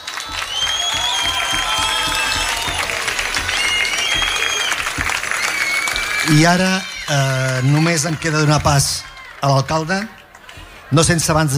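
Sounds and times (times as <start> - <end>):
audience whistles: 0.0 - 8.3
audience applause: 0.0 - 11.5
audience cheering: 0.0 - 11.5
speech: 6.3 - 10.2, 10.9 - 11.5.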